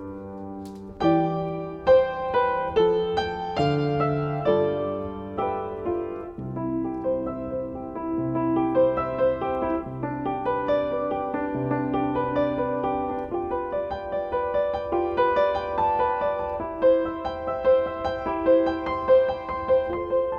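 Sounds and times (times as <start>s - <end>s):
piano improvisation: 0.0s - 20.3s.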